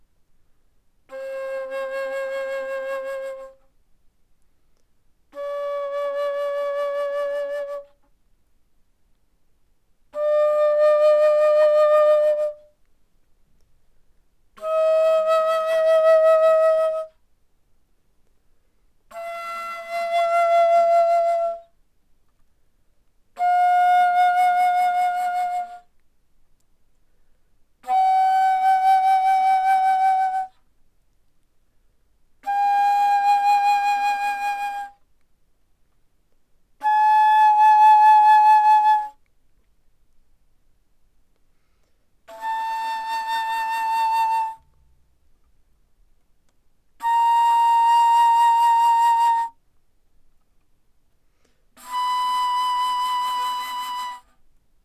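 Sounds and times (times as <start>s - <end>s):
bass flute played fortissimo: 1.1s - 3.6s, 5.3s - 8.0s, 10.2s - 12.7s, 14.6s - 17.1s, 19.1s - 21.7s, 23.4s - 25.9s, 27.8s - 30.5s, 32.4s - 35.0s, 36.8s - 39.2s, 42.3s - 44.7s, 47.0s - 49.6s, 51.8s - 54.3s.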